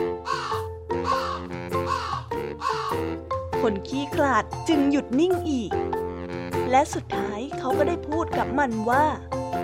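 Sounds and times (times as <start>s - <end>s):
crow cawing: 0.2s - 3.1s
speech: 3.6s - 6.0s, 6.6s - 9.3s.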